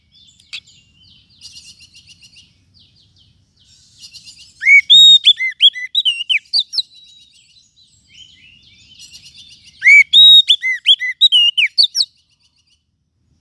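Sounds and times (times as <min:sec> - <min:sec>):
lovebird shrill chirps and whistles: 0:04.0 - 0:06.9, 0:08.1 - 0:12.2.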